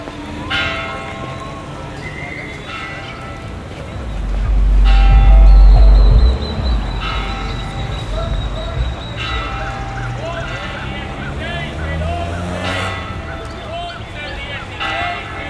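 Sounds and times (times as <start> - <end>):
cathedral church bells ringing: 0.0 - 15.4
low rumble: 3.8 - 11.2.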